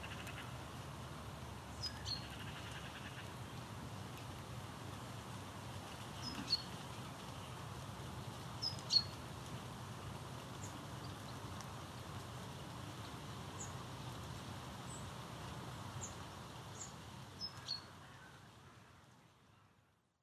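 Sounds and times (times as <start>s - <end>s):
outdoor soundscape in York: 0.0s - 20.2s.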